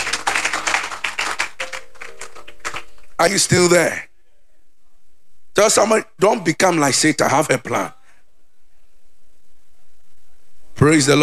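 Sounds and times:
congregation clapping hands at a church service: 0.0s - 3.2s
speech: 3.2s - 4.1s, 5.6s - 8.0s, 10.8s - 11.2s.

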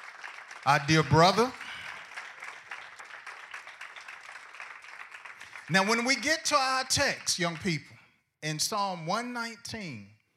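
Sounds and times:
audience hand clapping: 0.0s - 7.9s
speech: 0.6s - 1.6s, 5.7s - 10.1s.

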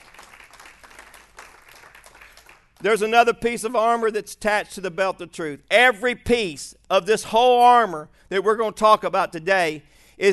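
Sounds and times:
audience clapping in praise: 0.0s - 3.0s
speech: 2.8s - 10.3s.

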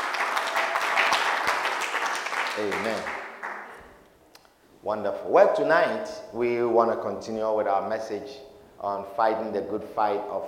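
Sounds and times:
audience applauding: 0.0s - 3.8s
speech: 2.6s - 3.2s, 4.8s - 10.4s.

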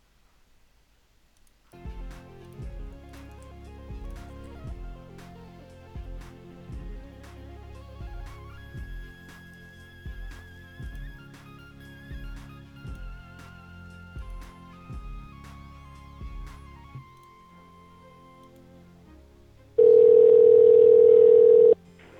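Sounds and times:
telephone dial tone after a call disconnects: 19.8s - 21.8s.

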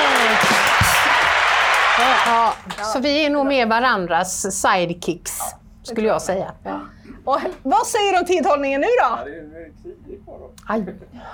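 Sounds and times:
audience clapping: 0.0s - 3.0s
speech: 2.2s - 11.3s.

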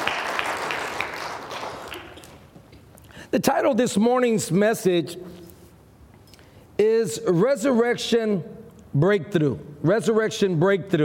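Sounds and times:
audience clapping: 0.0s - 2.5s
speech: 3.3s - 5.4s, 6.8s - 11.0s.

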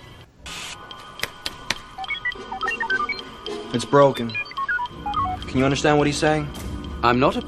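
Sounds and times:
droid beeps made with the mouth: 2.0s - 7.4s
speech: 3.7s - 4.4s, 5.5s - 7.4s.

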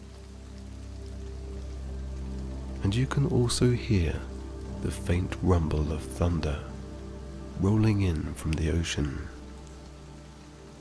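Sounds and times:
rain falling: 0.0s - 10.7s
speech: 2.9s - 6.7s, 7.6s - 9.4s.

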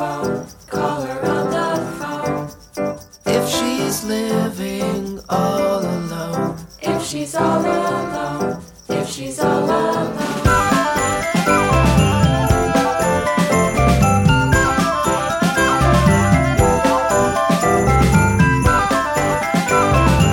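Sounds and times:
jingling bells: 0.0s - 20.3s
jovial Christmas song: 0.0s - 20.3s.

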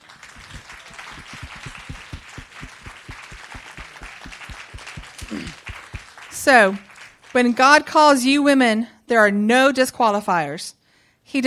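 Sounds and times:
crowd clapping and applauding: 0.0s - 7.6s
speech: 6.4s - 11.4s.

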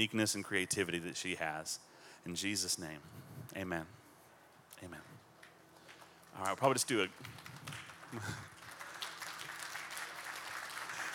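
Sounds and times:
speech: 0.0s - 4.0s, 4.8s - 5.2s, 6.4s - 8.5s
audience clapping lightly: 5.8s - 11.1s.

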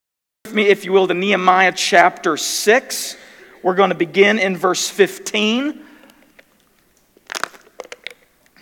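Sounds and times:
speech: 0.4s - 5.9s
thin plastic water bottle crinkling: 5.8s - 8.5s.

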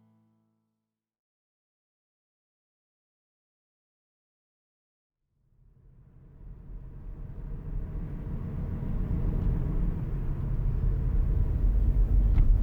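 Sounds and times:
car driving through downtown Butte: 6.1s - 12.6s.

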